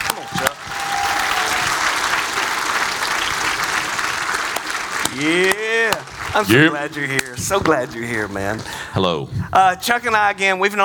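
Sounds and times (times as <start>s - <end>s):
audience applause welcoming a guest on stage: 0.0s - 8.7s
speech: 5.2s - 5.5s, 6.4s - 10.8s.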